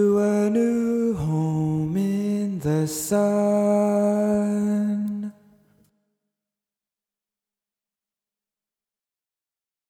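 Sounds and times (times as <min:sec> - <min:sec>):
tenor singing: 0:00.0 - 0:05.5.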